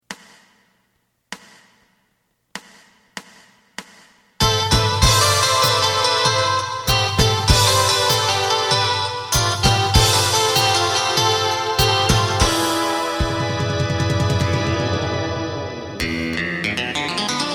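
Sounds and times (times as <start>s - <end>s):
bass: 4.4s - 17.4s.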